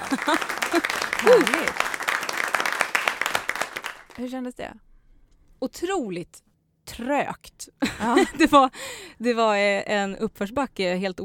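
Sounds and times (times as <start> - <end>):
laughter: 0.0 - 2.3
applause: 0.0 - 4.3
speech: 0.1 - 1.9, 4.2 - 4.9, 5.6 - 11.2.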